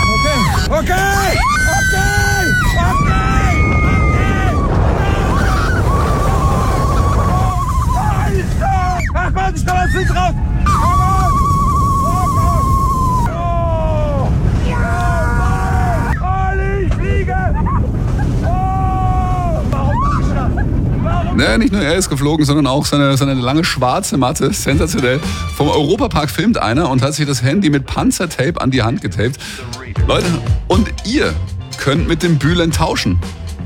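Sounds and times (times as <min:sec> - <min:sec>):
roller coaster riders screaming and yelling: 0:00.0 - 0:21.6
rush of wind on a high-speed roller coaster: 0:00.0 - 0:25.7
roller coaster ride at 130 km/h: 0:00.0 - 0:33.6
speech: 0:21.6 - 0:33.4.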